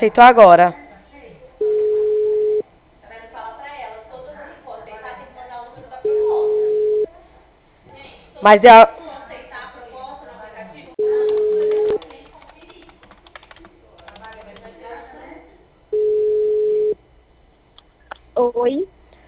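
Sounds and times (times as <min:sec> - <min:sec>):
speech: 0:00.0 - 0:00.8, 0:08.4 - 0:09.0
telephone busy tone after a dropped call: 0:01.6 - 0:02.6, 0:06.1 - 0:07.1, 0:11.0 - 0:12.0, 0:16.0 - 0:17.0.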